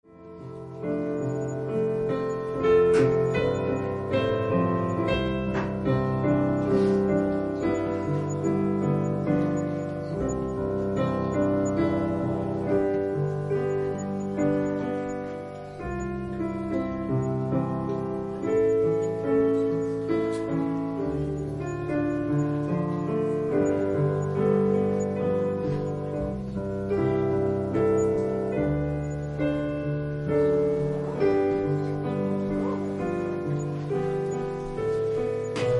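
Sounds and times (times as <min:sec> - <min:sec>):
piano prelude: 0:00.0 - 0:35.7.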